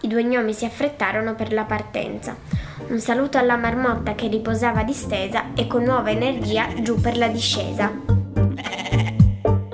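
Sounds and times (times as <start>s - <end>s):
speech: 0.0s - 8.1s
goat bleating: 8.4s - 9.6s.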